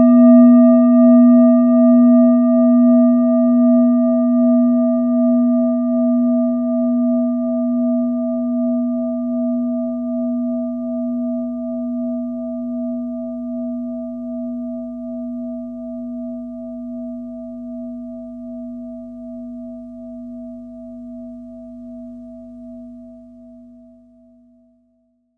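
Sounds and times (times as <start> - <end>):
metal singing bowl ringing: 0.0 - 22.3.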